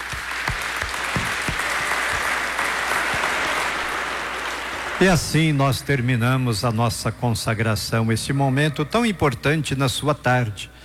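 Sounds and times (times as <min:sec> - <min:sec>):
applause: 0:00.0 - 0:05.4
speech: 0:05.0 - 0:10.8.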